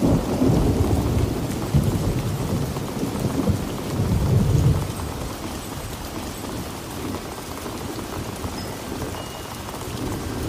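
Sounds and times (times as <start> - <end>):
low rolling thunder: 0.0 - 5.4
storm rain on surfaces: 0.0 - 10.4.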